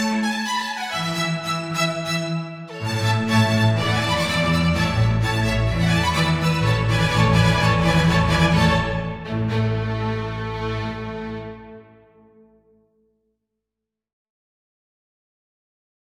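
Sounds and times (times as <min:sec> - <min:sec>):
18th-century string music: 0:00.0 - 0:12.7.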